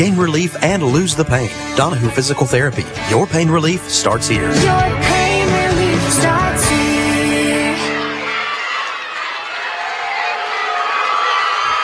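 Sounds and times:
speech: 0.0 - 5.3
arena crowd applause and cheering: 4.6 - 11.8.

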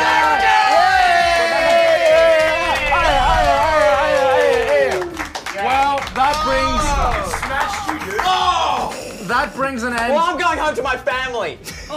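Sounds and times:
crowd cheering and whooping: 0.0 - 9.2
speech: 9.4 - 11.9.

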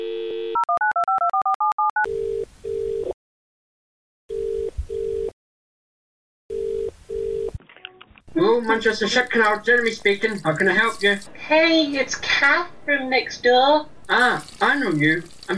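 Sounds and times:
double-pulsed telephone ringing tone: 0.3 - 3.2, 4.3 - 5.3, 6.5 - 7.6
speech: 8.6 - 15.5.

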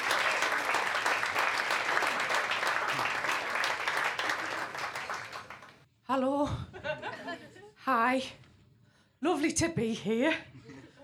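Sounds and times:
audience applause: 0.0 - 5.8
speech: 6.2 - 8.4, 9.2 - 10.5.

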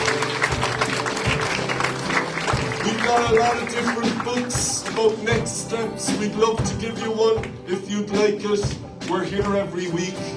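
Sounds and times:
church audience applauding a group of men: 0.0 - 5.6
speech: 3.1 - 10.3.

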